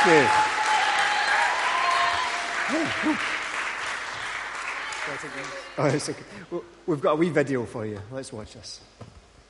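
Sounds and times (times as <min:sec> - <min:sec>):
speech: 0:00.0 - 0:00.5, 0:02.7 - 0:03.4, 0:05.1 - 0:09.0
audience applause: 0:00.0 - 0:06.1.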